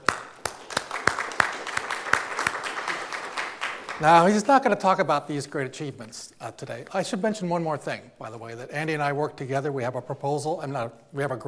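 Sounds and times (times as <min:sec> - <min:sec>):
audience applauding: 0:00.0 - 0:04.6
speech: 0:04.0 - 0:11.4.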